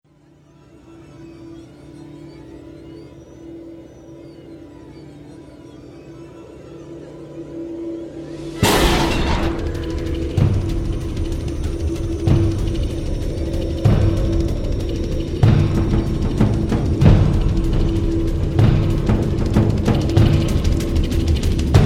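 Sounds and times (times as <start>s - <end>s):
drama action production music: 8.2s - 21.8s.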